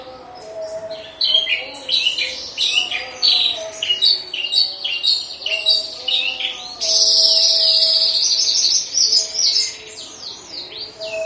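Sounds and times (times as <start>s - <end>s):
Horsfield's bush lark song: 0.0s - 11.2s.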